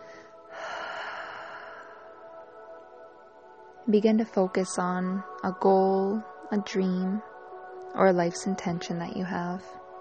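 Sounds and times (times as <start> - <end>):
deep breath in through the nose and out through the mouth: 0.0 - 3.0
speech: 3.9 - 7.3, 7.9 - 9.8.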